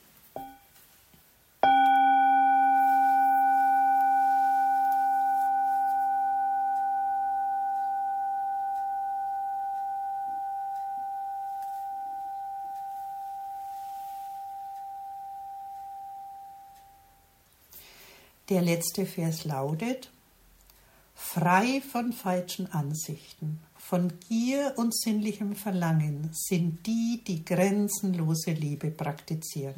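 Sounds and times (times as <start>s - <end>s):
bell ringing: 0.4s - 0.8s, 1.6s - 17.3s
speech: 18.5s - 20.1s, 21.4s - 29.7s.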